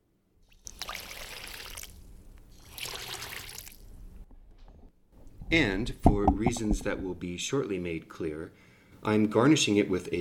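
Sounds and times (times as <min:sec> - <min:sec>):
tonic water poured over ice: 0:00.5 - 0:04.0
speech: 0:05.5 - 0:10.1.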